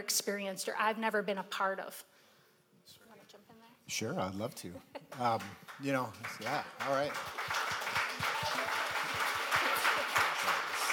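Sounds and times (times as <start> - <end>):
speech: 0.0 - 2.2, 2.9 - 7.6
hand clapping while holding a microphone: 5.1 - 10.9.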